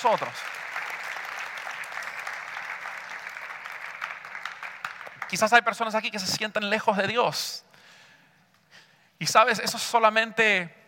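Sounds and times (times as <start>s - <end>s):
speech: 0.0s - 0.6s, 5.3s - 7.7s, 9.2s - 10.8s
audience applauding: 0.0s - 5.8s.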